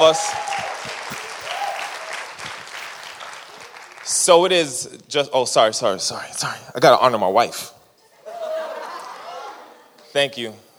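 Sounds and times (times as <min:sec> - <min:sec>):
speech: 0:00.0 - 0:00.6, 0:04.2 - 0:07.8, 0:10.2 - 0:10.6
audience clapping: 0:00.0 - 0:04.3
laughter: 0:08.2 - 0:09.9.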